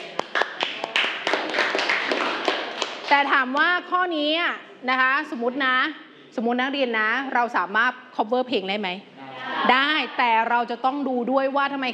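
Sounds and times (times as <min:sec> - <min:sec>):
classroom clapping for a classmate: 0:00.0 - 0:03.4
speech: 0:03.1 - 0:11.9.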